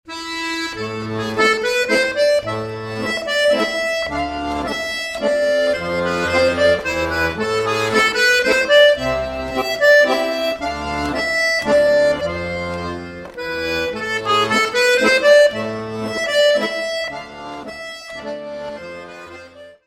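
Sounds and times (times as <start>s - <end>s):
minuet music from France: 0.1s - 19.8s.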